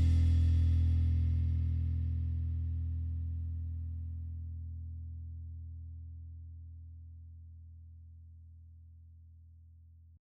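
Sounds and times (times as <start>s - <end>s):
bass guitar playing an instrumental cover: 0.0s - 6.6s.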